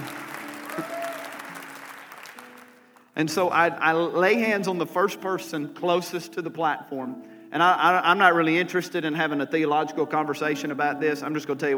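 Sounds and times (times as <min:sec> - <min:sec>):
applause: 0:00.0 - 0:03.2
speech: 0:03.2 - 0:11.7.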